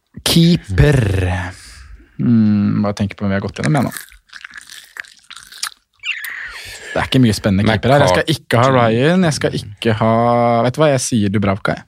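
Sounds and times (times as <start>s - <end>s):
speech: 0.4s - 1.6s, 2.2s - 4.1s, 6.9s - 11.8s
gum chewing into the microphone: 3.6s - 7.2s.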